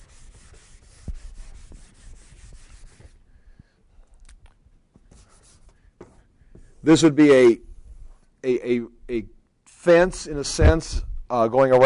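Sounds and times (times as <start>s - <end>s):
scratchy drawing strokes sketching a diagram: 0.0s - 3.2s, 5.1s - 5.8s
speech: 6.8s - 7.6s, 8.4s - 11.8s.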